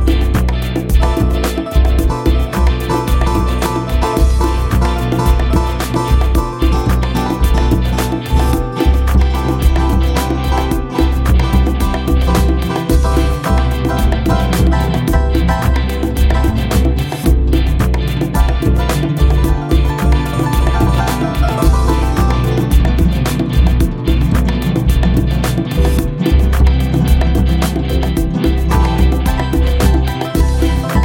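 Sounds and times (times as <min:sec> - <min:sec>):
guitar waves: 0:00.0 - 0:31.0.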